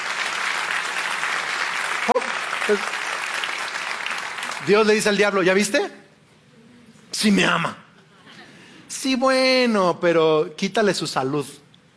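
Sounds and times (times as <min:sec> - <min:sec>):
church audience applauding: 0:00.0 - 0:05.2
speech: 0:02.1 - 0:03.0, 0:04.6 - 0:06.0, 0:07.2 - 0:07.8, 0:08.9 - 0:11.6.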